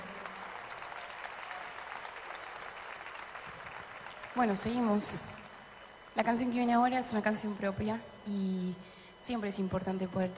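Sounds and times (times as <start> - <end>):
audience applause: 0.0 - 4.9
speech: 4.4 - 5.4, 6.2 - 10.3.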